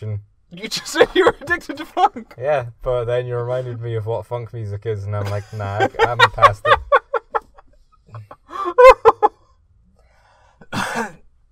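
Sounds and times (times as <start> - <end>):
speech: 0.0 - 6.8
laughter: 0.8 - 1.6, 5.2 - 9.4
person coughing: 10.6 - 11.2.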